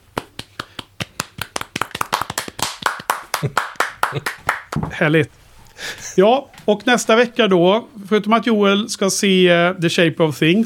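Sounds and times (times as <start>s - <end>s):
applause: 0.5s - 4.8s
speech: 3.4s - 4.4s, 5.0s - 10.6s.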